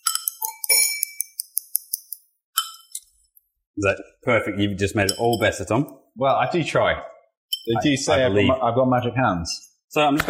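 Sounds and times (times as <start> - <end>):
glass being picked up clinking: 0.0 - 3.1, 5.0 - 5.7, 7.5 - 7.8
speech: 3.8 - 10.2.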